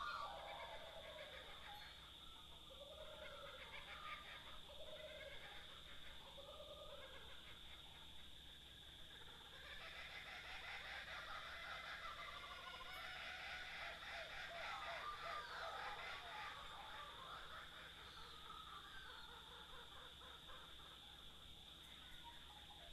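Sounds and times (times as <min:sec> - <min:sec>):
Australian birds: 0:00.0 - 0:22.9.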